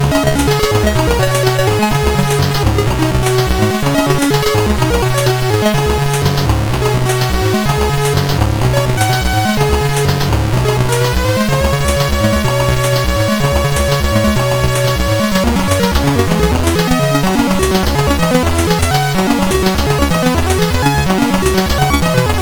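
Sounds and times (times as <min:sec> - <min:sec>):
chiptune music on SID CSG8580R5 chip: 0:00.0 - 0:22.3.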